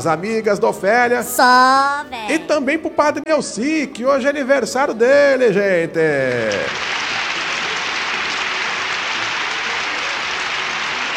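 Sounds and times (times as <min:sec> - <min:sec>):
speech: 0:00.0 - 0:06.9
crowd clapping: 0:06.3 - 0:11.1.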